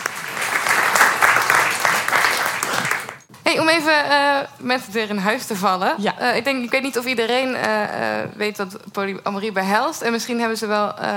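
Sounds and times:
warm audience applause: 0:00.0 - 0:03.3
speech: 0:03.5 - 0:11.1.

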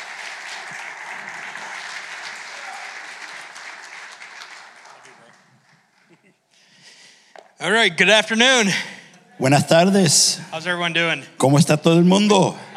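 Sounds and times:
audience applause: 0:00.0 - 0:06.2
speech: 0:07.6 - 0:12.7.

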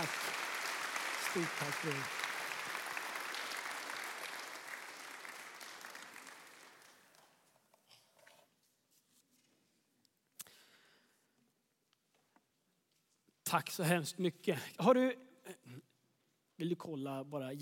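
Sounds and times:
warm applause from church audience: 0:00.0 - 0:07.4
speech: 0:01.3 - 0:02.2, 0:13.5 - 0:15.9, 0:16.6 - 0:17.6.

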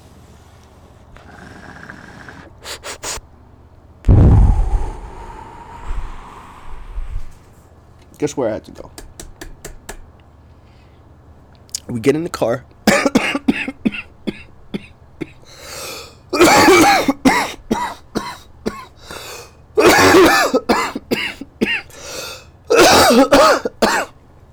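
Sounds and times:
speech: 0:08.2 - 0:09.0, 0:11.9 - 0:12.7
person coughing after smoking: 0:12.9 - 0:24.1.

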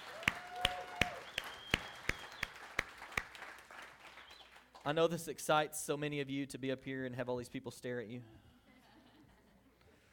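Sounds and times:
audience clapping: 0:00.0 - 0:05.1
speech: 0:04.8 - 0:08.4.

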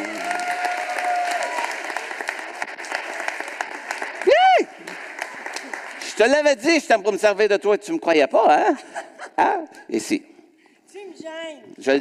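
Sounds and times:
audience applause: 0:00.0 - 0:06.4
speech: 0:06.2 - 0:10.3, 0:11.2 - 0:12.0.

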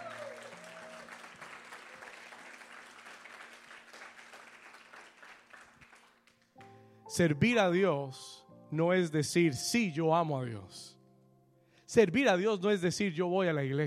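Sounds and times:
audience applause: 0:00.0 - 0:06.4
speech: 0:07.2 - 0:11.0, 0:11.9 - 0:13.8.

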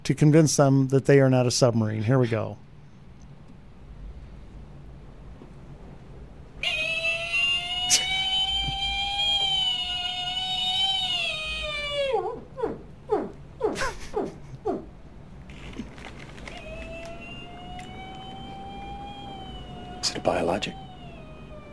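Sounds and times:
speech: 0:00.1 - 0:02.6
person imitating whale song: 0:06.6 - 0:14.1, 0:16.6 - 0:21.7.

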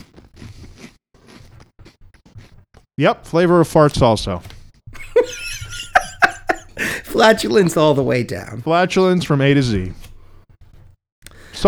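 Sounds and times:
crunching from biting into a crunchy snack: 0:00.0 - 0:02.9
speech: 0:03.0 - 0:04.5, 0:07.2 - 0:10.0
laughter: 0:05.0 - 0:08.6.

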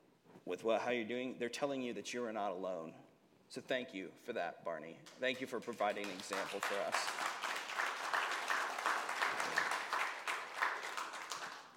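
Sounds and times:
speech: 0:00.4 - 0:07.3
audience clapping: 0:05.0 - 0:11.7.

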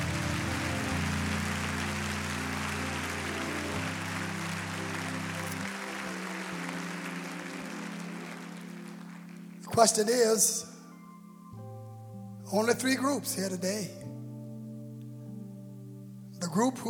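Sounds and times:
crowd clapping hands: 0:00.0 - 0:10.3
low organ-like chords: 0:00.0 - 0:16.8
speech: 0:09.8 - 0:10.7, 0:12.5 - 0:14.0, 0:16.5 - 0:16.8.

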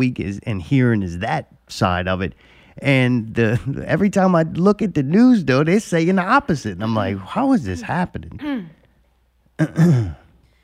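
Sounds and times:
speech: 0:00.0 - 0:08.8, 0:09.6 - 0:10.2
throat clearing: 0:09.6 - 0:10.3.

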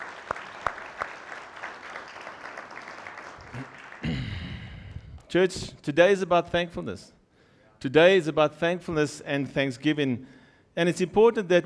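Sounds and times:
audience applause: 0:00.0 - 0:05.3
speech: 0:05.3 - 0:07.2, 0:07.8 - 0:11.6.

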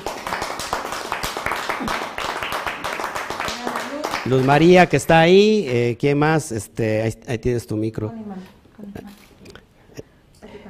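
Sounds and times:
crowd applauding: 0:00.0 - 0:05.1
speech: 0:04.2 - 0:09.0.

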